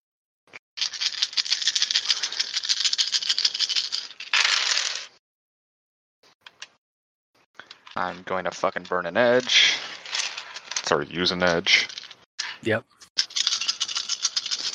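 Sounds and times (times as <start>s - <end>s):
nine dice rattling in a hand: 0.8s - 5.1s, 9.3s - 12.2s, 13.2s - 14.7s
speech: 8.0s - 9.9s, 10.9s - 12.0s, 12.6s - 13.0s.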